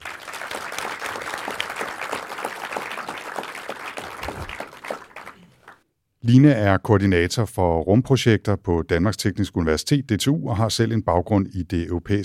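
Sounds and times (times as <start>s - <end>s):
live audience applause for an invited guest: 0.0s - 5.8s
speech: 6.3s - 12.2s.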